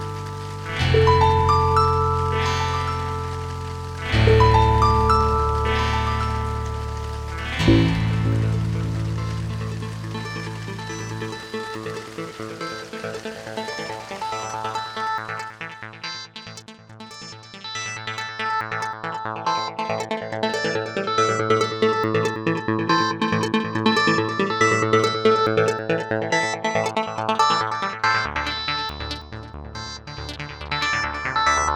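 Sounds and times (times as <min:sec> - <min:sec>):
rain: 0:00.0 - 0:16.1, 0:19.8 - 0:27.6
electro music: 0:00.0 - 0:31.7.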